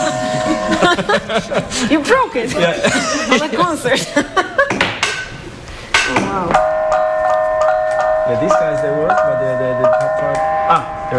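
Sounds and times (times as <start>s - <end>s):
gong tapped with a beater: 0.0s - 1.6s, 6.3s - 11.1s
laughter: 0.0s - 4.8s
speech: 0.9s - 4.8s, 6.3s - 6.7s.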